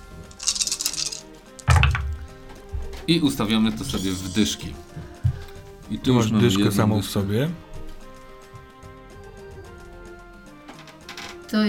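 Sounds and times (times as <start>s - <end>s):
dice clattering across a hard surface: 0.3s - 2.3s
speech: 3.1s - 5.0s, 5.9s - 7.7s.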